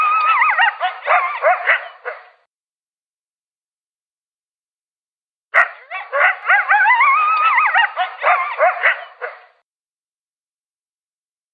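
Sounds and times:
coyote yipping and howling: 0.0s - 2.3s, 5.6s - 9.5s.

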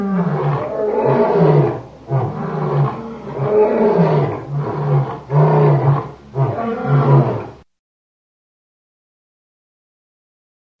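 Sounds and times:
lion roaring grunts: 0.0s - 7.6s.

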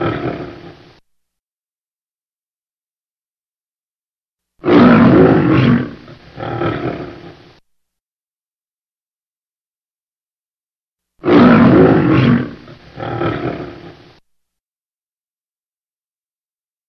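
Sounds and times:
lion roaring: 0.0s - 1.0s, 4.6s - 7.6s, 11.2s - 14.2s.

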